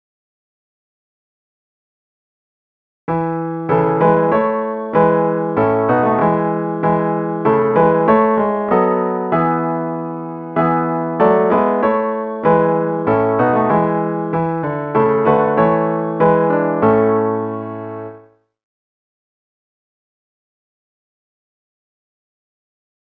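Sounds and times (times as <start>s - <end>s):
melody: 3.3s - 18.2s.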